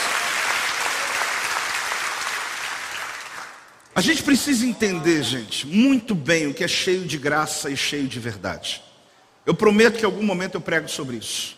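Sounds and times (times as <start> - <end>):
audience clapping: 0.0 - 4.0
speech: 4.0 - 8.9, 9.5 - 11.5.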